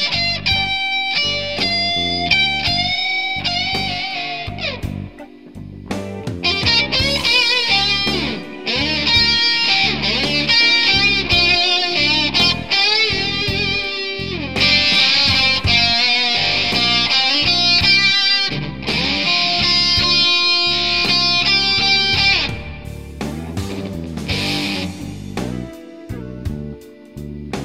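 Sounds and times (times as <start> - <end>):
blues electric guitar with humbucker pickup: 0.0 - 27.6.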